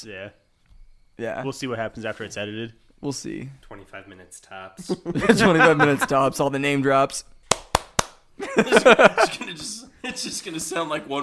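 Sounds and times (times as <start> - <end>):
speech: 0.0 - 0.4, 1.2 - 7.3, 8.4 - 11.2
people laughing: 4.8 - 6.4, 8.4 - 10.4
hand claps: 7.4 - 8.2.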